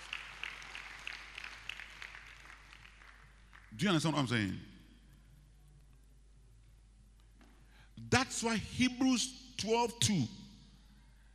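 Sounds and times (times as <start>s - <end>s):
audience applause: 0.0s - 3.7s
speech: 3.8s - 4.7s, 8.4s - 10.4s.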